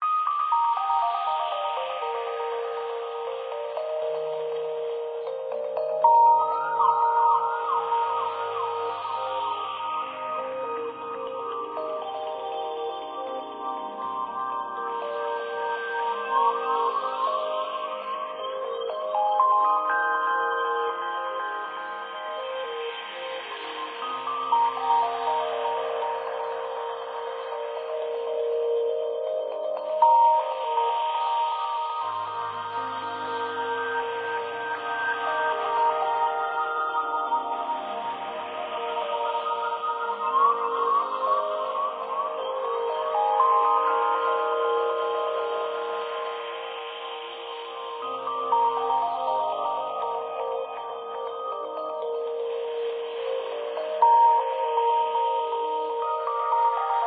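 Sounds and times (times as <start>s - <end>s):
ambient music: 0.0s - 57.0s.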